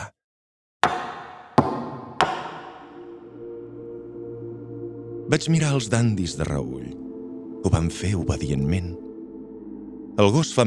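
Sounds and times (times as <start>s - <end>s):
knocking on tables: 0.8s - 3.1s
speech: 5.3s - 7.0s, 7.6s - 9.0s, 10.2s - 10.6s.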